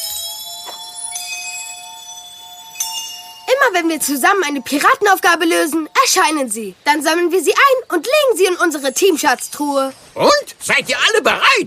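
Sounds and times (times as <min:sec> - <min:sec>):
gold coins appearing sound effect: 0:00.0 - 0:06.0
speech: 0:03.6 - 0:11.6.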